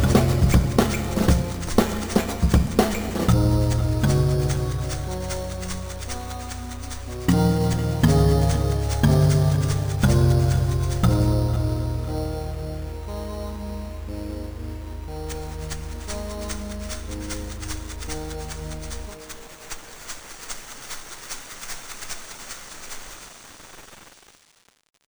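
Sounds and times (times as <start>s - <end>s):
type beat: 0.0s - 19.1s.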